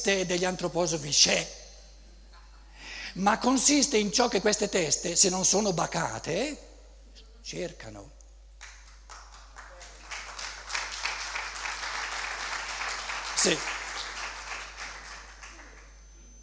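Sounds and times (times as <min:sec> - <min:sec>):
speech: 0:00.0 - 0:01.6, 0:03.2 - 0:06.7, 0:07.4 - 0:08.2, 0:13.4 - 0:13.7
audience applause: 0:09.1 - 0:15.9.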